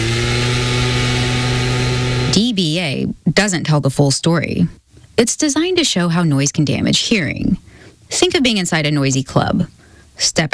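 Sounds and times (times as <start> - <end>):
gas-powered leaf blower running: 0.0 - 2.4
speech: 2.4 - 10.5.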